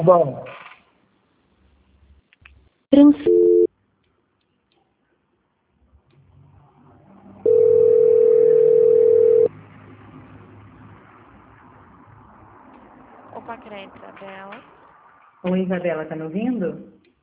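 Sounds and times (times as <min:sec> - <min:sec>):
speech: 0:00.0 - 0:00.6, 0:02.9 - 0:03.5, 0:13.5 - 0:14.8, 0:15.4 - 0:17.0
telephone dial tone while redialing: 0:07.4 - 0:09.5
short telephone beeps while redialing: 0:07.5 - 0:09.5.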